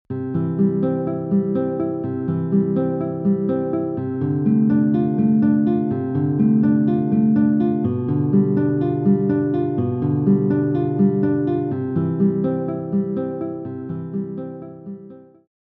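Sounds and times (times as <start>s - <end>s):
guitar piece: 0.1s - 15.4s.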